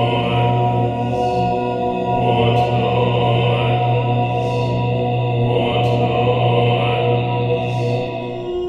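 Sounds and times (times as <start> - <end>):
ambience: 0.0 - 8.6.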